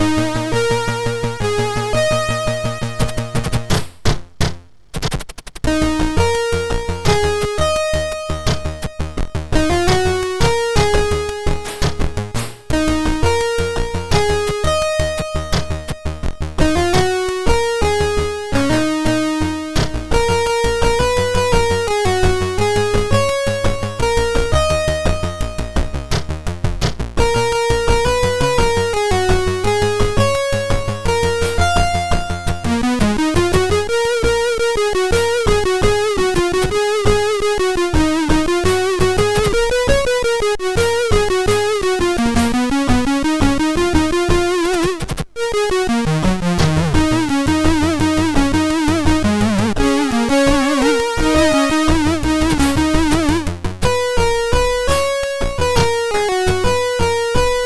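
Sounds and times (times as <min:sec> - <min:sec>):
SID chip MOS6581R4 music: 0:00.0 - 0:03.8, 0:05.7 - 0:57.6.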